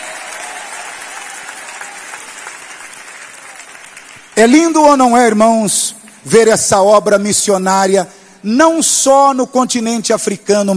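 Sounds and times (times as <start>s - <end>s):
audience clapping: 0.0s - 6.3s
speech: 4.4s - 10.7s.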